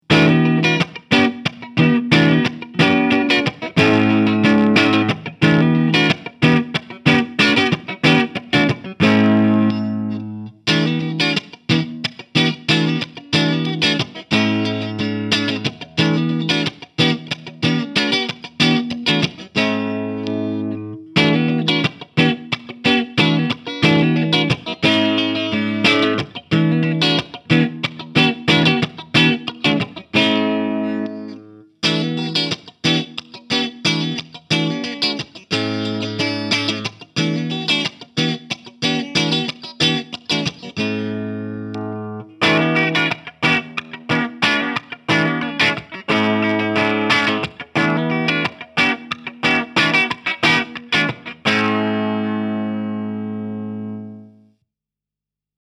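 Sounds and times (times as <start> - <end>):
Harley Benton R 446 clean electric guitar: 0.0 - 54.6.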